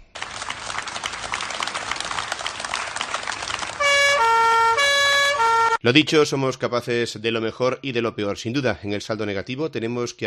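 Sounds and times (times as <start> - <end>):
crowd applause: 0.0 - 5.8
police patrol car sirens wailing: 0.2 - 5.8
speech: 5.8 - 10.2.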